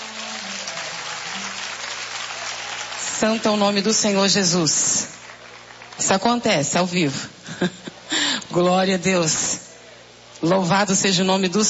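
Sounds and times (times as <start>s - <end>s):
crowd audience applauding: 0.0s - 6.4s
speech: 3.2s - 5.2s, 6.0s - 8.0s, 8.6s - 9.6s, 10.4s - 11.6s.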